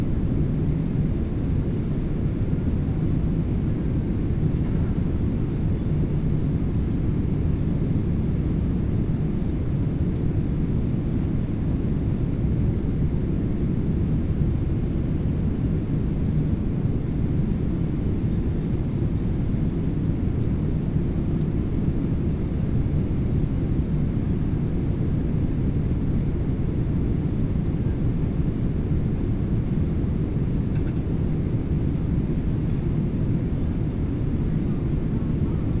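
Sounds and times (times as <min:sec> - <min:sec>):
Boeing 777 inflight cabin ambience: 0:00.0 - 0:35.7.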